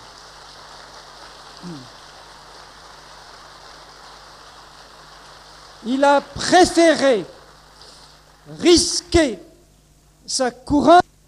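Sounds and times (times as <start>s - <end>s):
audience applause: 0.0s - 8.6s
speech: 1.6s - 2.0s, 5.8s - 7.4s, 8.5s - 9.5s, 10.3s - 11.0s.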